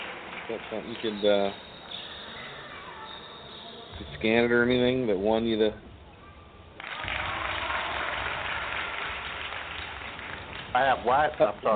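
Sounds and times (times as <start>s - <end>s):
audience clapping: 0.0s - 1.3s, 6.8s - 11.7s
speech: 0.5s - 1.7s, 4.2s - 5.9s, 10.8s - 11.7s.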